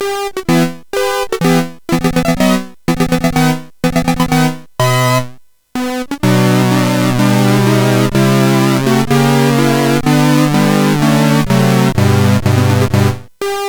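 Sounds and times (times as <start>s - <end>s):
SID CSG8580 chip music: 0.0s - 13.6s.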